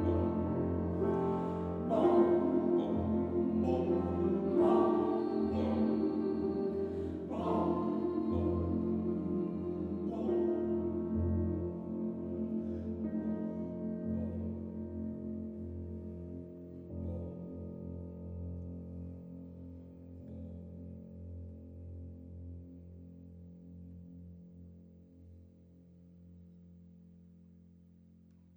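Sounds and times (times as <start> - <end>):
Transylvanian church choir singing: 0.0 - 17.2
piano: 0.0 - 28.5.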